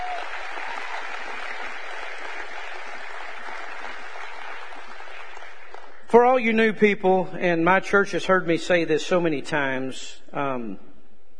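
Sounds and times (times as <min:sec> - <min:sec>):
audience clapping hands: 0:00.0 - 0:06.1
speech: 0:06.1 - 0:10.9.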